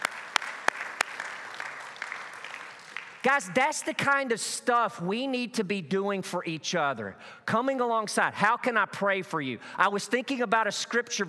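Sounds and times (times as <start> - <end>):
group applauding: 0.0 - 3.6
speech: 3.2 - 11.2.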